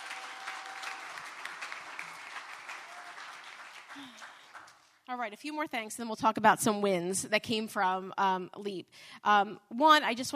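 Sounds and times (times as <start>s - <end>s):
faint cheers: 0.0s - 4.6s
audience applause: 0.0s - 4.9s
speech: 5.1s - 10.3s.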